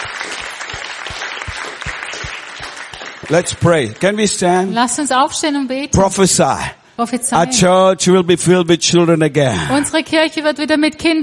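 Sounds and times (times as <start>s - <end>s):
audience applause in a church: 0.0s - 4.8s
speech: 3.3s - 11.2s.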